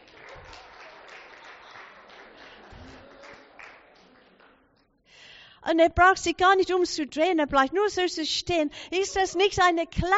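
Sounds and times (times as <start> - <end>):
audience applause: 0.0 - 4.7
speech: 5.7 - 10.1.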